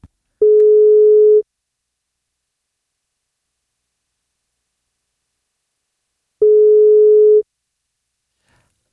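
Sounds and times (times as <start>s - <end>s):
outgoing telephone call ringback tones: 0.4s - 1.4s, 6.4s - 7.4s.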